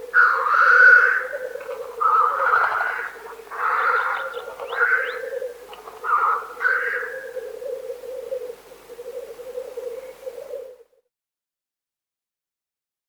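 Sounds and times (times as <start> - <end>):
black grouse cooing: 0.0 - 11.1.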